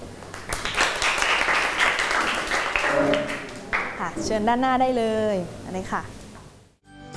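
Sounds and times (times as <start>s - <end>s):
classroom applause: 0.2s - 4.0s
speech: 4.2s - 6.2s.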